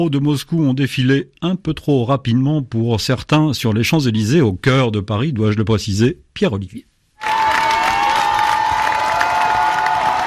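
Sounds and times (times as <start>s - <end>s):
speech: 0.0s - 7.4s
crowd cheering and applauding passing team bus: 7.2s - 10.2s.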